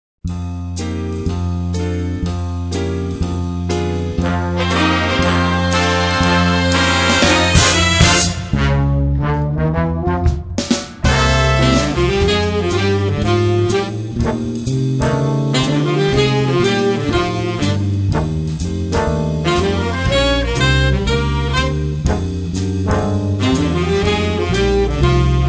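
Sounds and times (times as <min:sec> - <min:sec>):
jazz music: 0:00.3 - 0:25.4.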